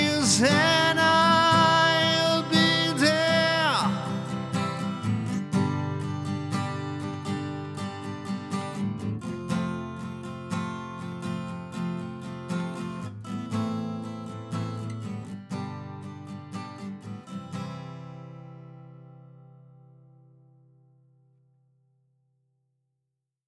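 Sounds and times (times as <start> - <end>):
vocals recorded with Austrian Audio OC818 microphone: 0.0 - 4.4
guitar through a preamp: 0.0 - 22.5.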